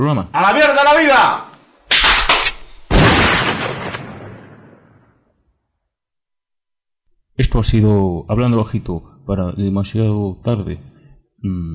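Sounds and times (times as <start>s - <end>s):
speech: 0.0s - 1.4s, 7.4s - 11.7s
gunshot sound effect: 1.9s - 5.2s.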